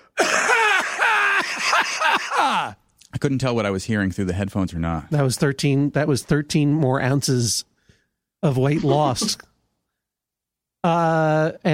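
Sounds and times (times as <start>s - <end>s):
heavy phlegmy cough: 0.0s - 2.6s
speech: 1.6s - 7.7s, 8.4s - 9.5s, 10.8s - 11.7s.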